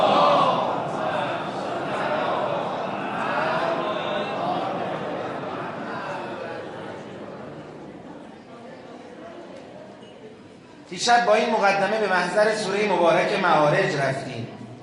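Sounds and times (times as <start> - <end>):
mourners at a mourning gathering for Imam Husayn chanting salawat in unison: 0.0 - 7.4
speech: 10.9 - 14.6.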